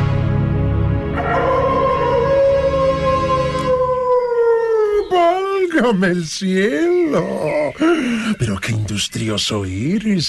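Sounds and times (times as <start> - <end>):
wolf howling: 1.1 - 5.7
speech: 5.8 - 10.2.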